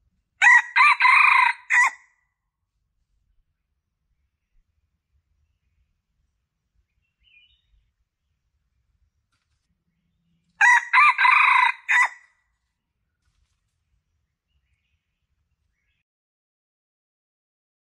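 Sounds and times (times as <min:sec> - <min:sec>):
Red junglefowl crowing: 0:00.4 - 0:02.0, 0:10.6 - 0:12.3.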